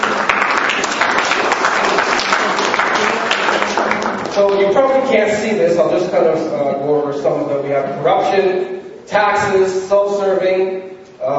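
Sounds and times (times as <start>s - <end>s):
audience applause: 0.0s - 5.0s
speech: 4.6s - 11.3s.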